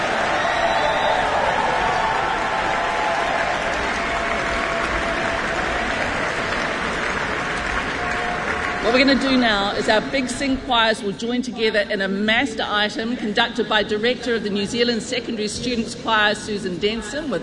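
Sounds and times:
audience applause: 0.0 - 9.8
speech: 8.9 - 17.4.

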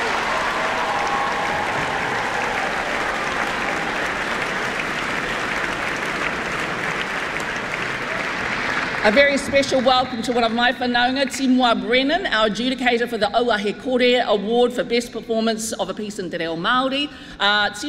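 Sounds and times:
sustained audience applause: 0.0 - 10.6
speech: 9.0 - 17.8.

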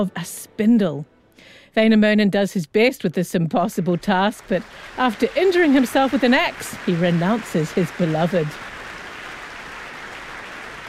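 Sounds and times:
speech: 0.0 - 8.7
audience applauding for the concertmaster: 3.7 - 10.8.

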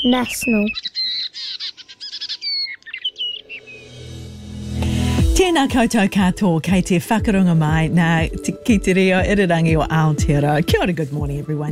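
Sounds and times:
speech: 0.0 - 1.6, 5.4 - 11.7
brown creeper calling in high chirps and twittering: 0.0 - 4.2.

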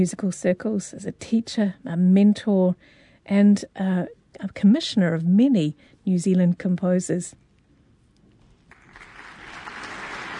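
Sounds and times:
speech: 0.0 - 7.4
concert audience applause: 8.7 - 10.3.

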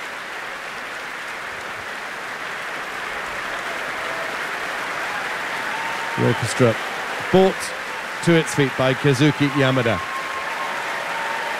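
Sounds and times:
concert audience applause: 0.0 - 11.5
speech: 6.2 - 10.1.

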